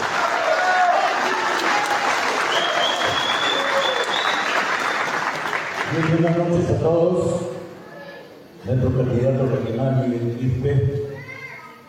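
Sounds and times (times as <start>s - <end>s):
audience applause: 0.0s - 6.6s
speech: 6.0s - 7.5s, 8.6s - 11.0s.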